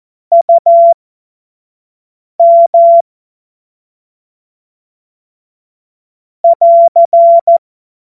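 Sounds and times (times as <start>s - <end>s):
morse code CW: 2.4s - 3.0s, 6.5s - 7.6s.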